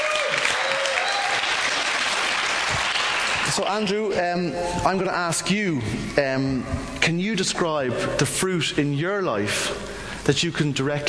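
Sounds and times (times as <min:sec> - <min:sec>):
applause: 0:00.0 - 0:04.1
speech: 0:03.6 - 0:11.0.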